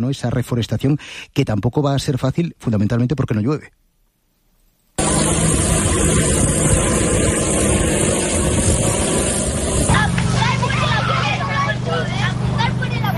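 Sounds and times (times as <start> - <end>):
speech: 0.0 - 3.8
drones flying overhead seeding forest: 5.0 - 13.1
chatter of many young voices: 9.9 - 13.1.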